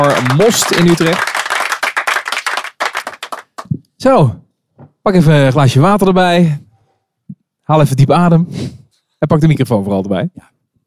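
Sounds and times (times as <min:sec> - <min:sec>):
speech: 0:00.0 - 0:01.4, 0:04.0 - 0:06.6, 0:07.7 - 0:10.5
audience applause: 0:00.0 - 0:03.7.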